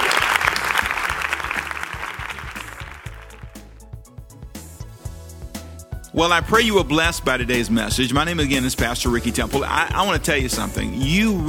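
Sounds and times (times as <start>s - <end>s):
audience applauding: 0.0s - 3.7s
low rhythmic bass pulse from music: 0.5s - 11.4s
speech: 6.2s - 11.4s.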